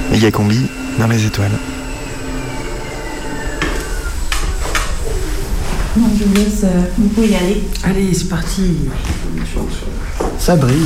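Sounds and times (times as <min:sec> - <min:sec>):
telescope drive motor whistling while tracking: 0:00.0 - 0:06.4
speech: 0:00.2 - 0:01.8, 0:06.0 - 0:10.8.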